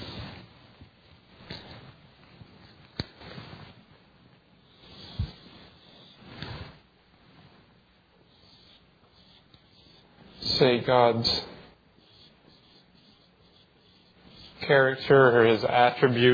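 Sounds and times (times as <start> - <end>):
scratchy drawing strokes on a board: 4.6 - 6.9, 8.2 - 16.3
speech: 10.6 - 11.5, 14.7 - 16.3.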